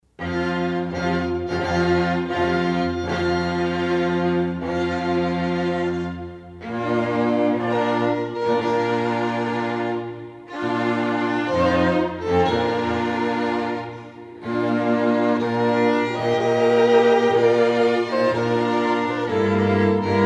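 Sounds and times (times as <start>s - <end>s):
strings: 0.0s - 20.2s.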